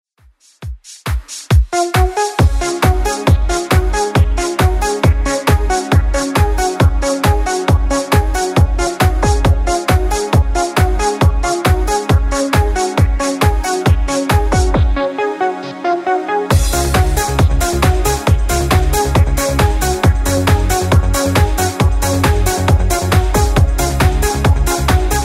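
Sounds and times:
90s music at 136 bpm: 0.2s - 25.2s.

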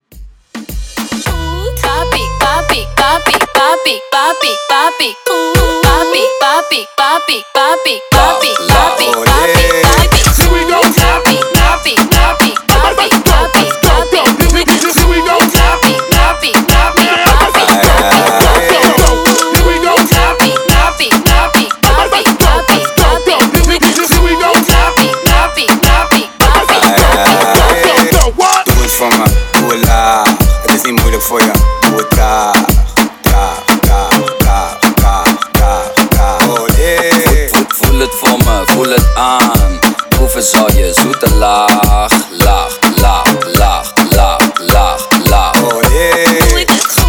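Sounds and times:
reggaeton party breakbeat: 0.0s - 47.0s.

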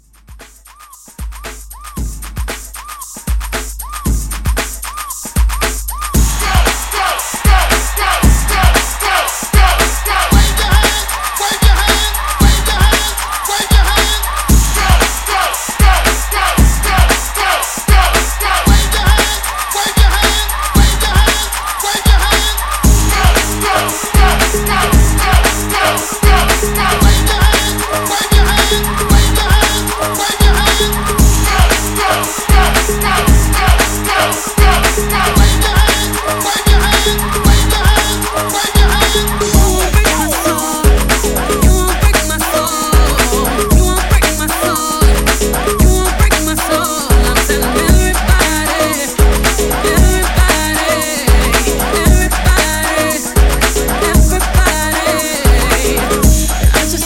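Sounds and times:
party break beat: 0.0s - 57.0s.

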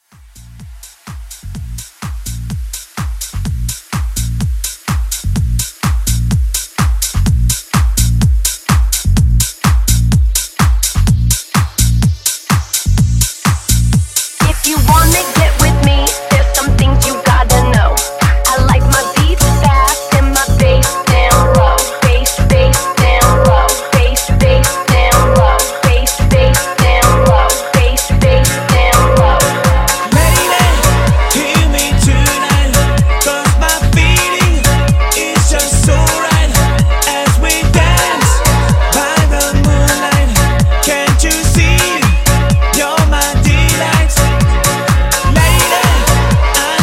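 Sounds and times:
house music with vocals at 126 bpm: 0.0s - 46.8s.

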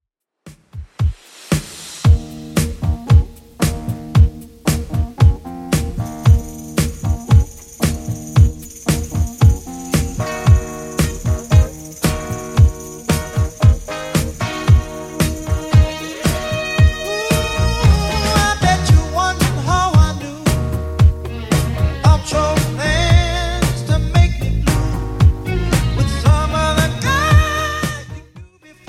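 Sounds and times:
1970s style music at 114 bpm: 0.7s - 28.8s.

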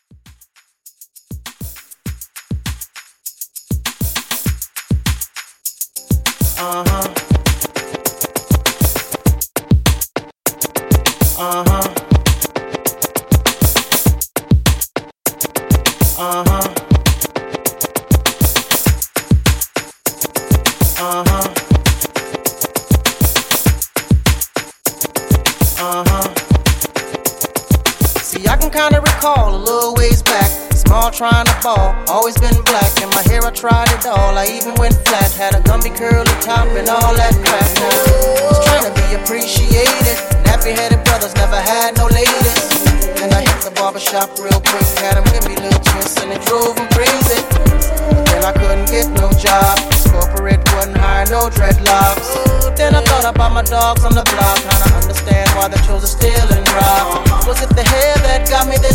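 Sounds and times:
rhythm and blues drum beat at 100 BPM made with ReDrum: 0.0s - 58.9s.

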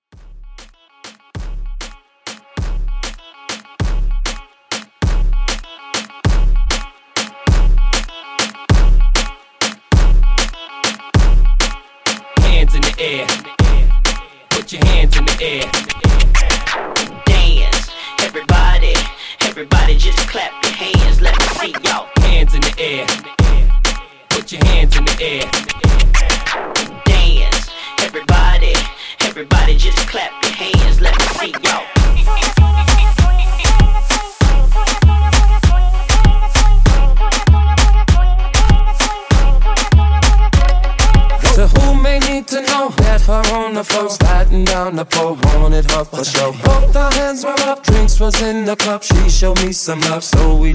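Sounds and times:
moombahton beat: 0.0s - 50.7s.

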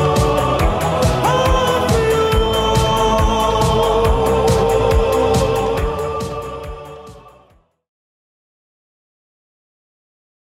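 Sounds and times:
80s drum machine beat: 0.0s - 7.3s.

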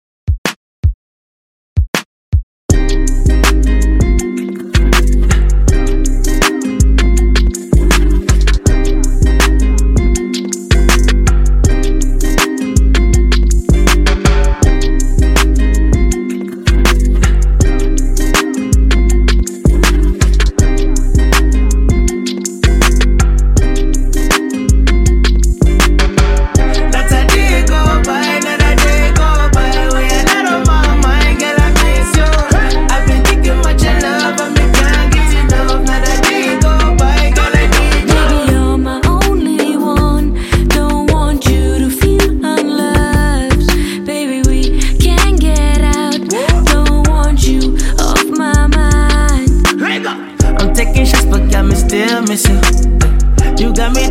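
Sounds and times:
top 40 pop music: 2.7s - 54.0s.

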